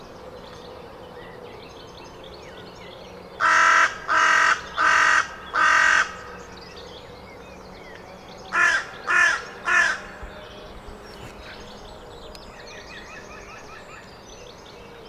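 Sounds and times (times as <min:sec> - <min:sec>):
Carrion crow cawing: 0:03.4 - 0:06.5, 0:08.5 - 0:10.4.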